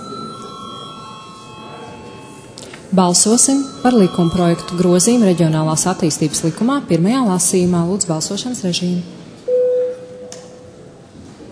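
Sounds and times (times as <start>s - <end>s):
parliament chamber bell before a vote: 0.0s - 6.0s
speech: 2.9s - 9.3s.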